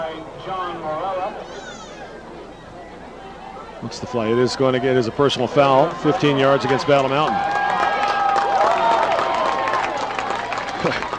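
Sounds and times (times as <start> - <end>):
speech: 0.2 - 1.7, 3.8 - 7.8
applause from football game spectators: 6.0 - 11.1.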